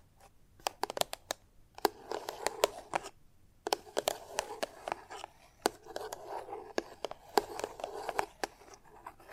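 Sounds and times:
chalk tapping: 0:00.6 - 0:03.1, 0:03.6 - 0:09.3
chalk scratching and carving: 0:01.8 - 0:03.1, 0:03.7 - 0:09.3.

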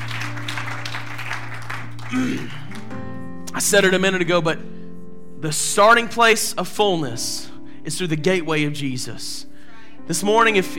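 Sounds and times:
audience clapping hands in praise: 0:00.0 - 0:03.1
speech: 0:02.1 - 0:02.6, 0:03.6 - 0:04.7, 0:05.4 - 0:09.5, 0:10.1 - 0:10.7.

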